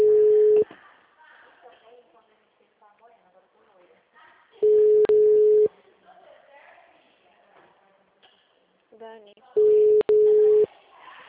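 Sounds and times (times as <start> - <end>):
electronic telephone ring tone: 0.0 - 0.6, 4.6 - 5.7, 9.6 - 10.7.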